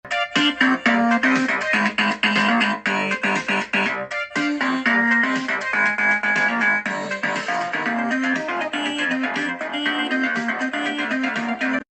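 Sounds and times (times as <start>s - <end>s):
random shitpost music: 0.0s - 11.9s.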